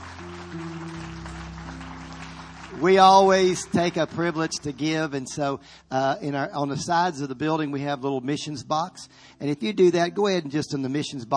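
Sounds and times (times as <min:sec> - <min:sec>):
church congregation clapping after a sermon: 0:00.0 - 0:05.5
sustained held keyboard chords: 0:00.0 - 0:06.4
speech: 0:02.8 - 0:11.3.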